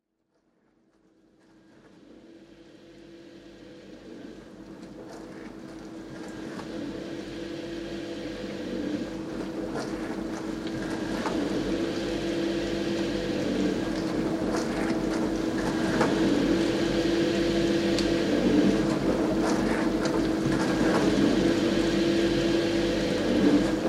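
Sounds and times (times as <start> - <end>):
dishwasher running: 1.4 - 23.8.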